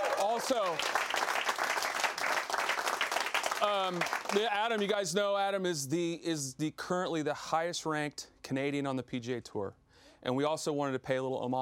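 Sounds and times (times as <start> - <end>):
audience clapping and applause: 0.0 - 5.0
speech: 0.4 - 1.1, 3.6 - 11.5.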